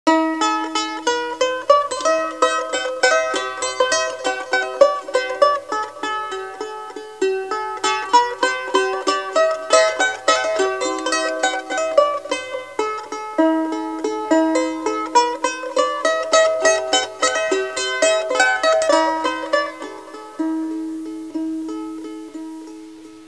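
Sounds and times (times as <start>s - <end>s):
instrumental music: 0.1s - 23.2s.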